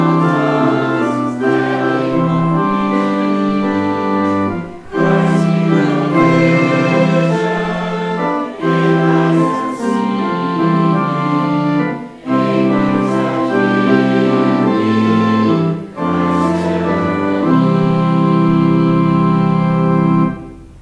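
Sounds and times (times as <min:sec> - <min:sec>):
hymn singing: 0:00.0 - 0:20.8.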